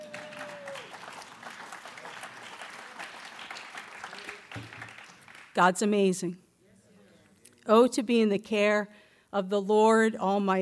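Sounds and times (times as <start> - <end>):
audience clapping: 0.0 - 5.6
speech: 5.6 - 6.4, 7.7 - 10.5.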